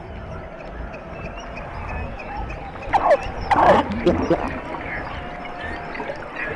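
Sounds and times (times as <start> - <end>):
underwater squeaks, whoops and chattering calls beneath sea ice: 2.8 - 6.5.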